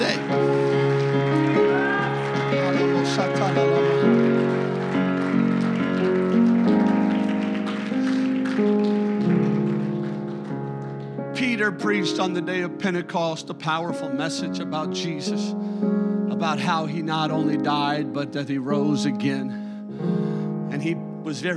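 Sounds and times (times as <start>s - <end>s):
crowd clapping hands loudly: 0.0s - 12.2s
speech: 11.8s - 20.2s, 20.8s - 21.5s.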